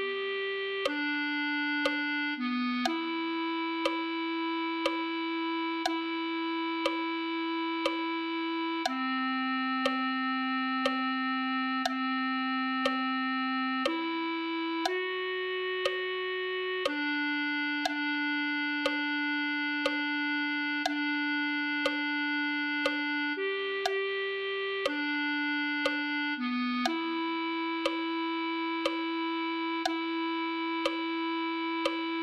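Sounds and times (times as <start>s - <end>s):
clarinet: 0.0s - 32.2s.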